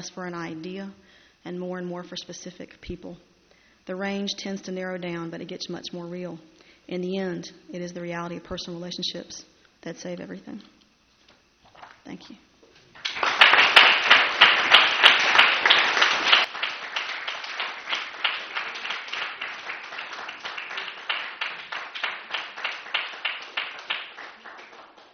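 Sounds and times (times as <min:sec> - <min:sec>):
speech: 0:00.0 - 0:03.3, 0:03.9 - 0:10.7, 0:12.0 - 0:12.5
audience applause: 0:13.0 - 0:25.1.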